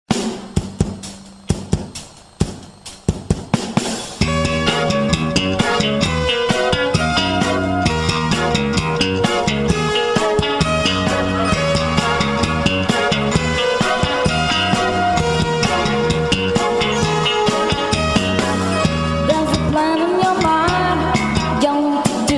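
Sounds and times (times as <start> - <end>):
funk boogie music: 0.1 - 22.3.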